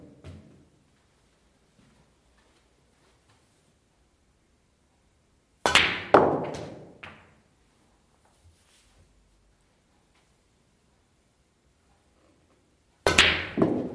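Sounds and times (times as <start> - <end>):
snooker practice: 0.0 - 0.8, 5.6 - 9.2, 12.0 - 13.9.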